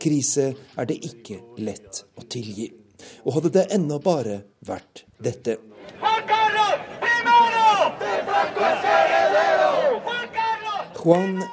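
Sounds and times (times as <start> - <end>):
speech: 0.0 - 7.0, 11.0 - 11.5
crowd of demonstrators shouting in central Madrid: 5.8 - 11.5.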